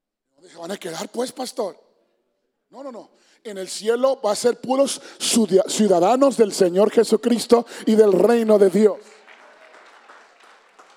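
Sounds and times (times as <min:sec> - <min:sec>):
speech: 0:00.5 - 0:01.8, 0:02.7 - 0:09.2
weak audience applause: 0:09.0 - 0:10.9.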